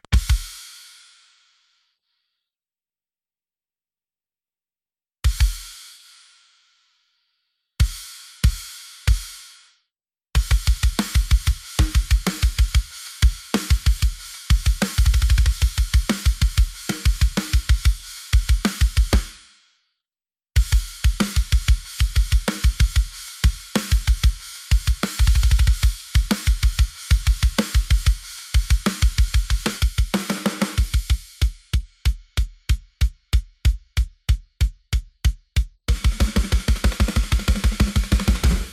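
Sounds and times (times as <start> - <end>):
drums: 0.0 - 1.7, 5.2 - 6.8, 7.8 - 19.7, 20.6 - 38.7.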